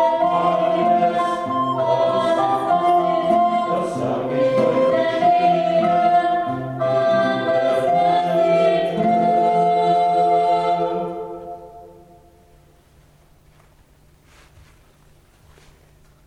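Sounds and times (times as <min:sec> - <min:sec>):
solo flutes: 0:00.0 - 0:12.4.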